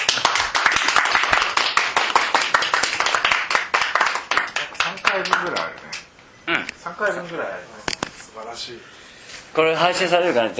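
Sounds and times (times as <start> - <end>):
people clapping: 0.0 - 6.1
speech: 6.9 - 10.5.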